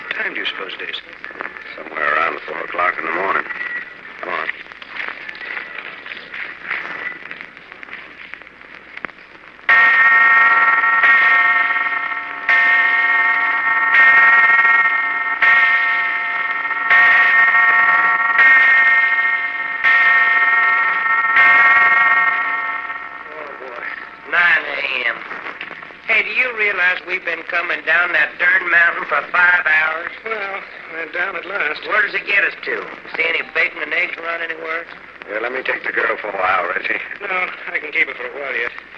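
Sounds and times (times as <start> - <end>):
speech: 0.2 - 4.4, 27.3 - 30.3, 31.0 - 38.9
distant church bells ringing: 9.7 - 25.4, 26.1 - 36.8.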